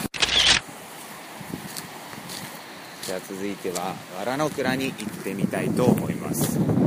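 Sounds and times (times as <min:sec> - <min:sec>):
phone camera shutter taking a photo: 0:00.2 - 0:00.6
speech: 0:03.1 - 0:06.8.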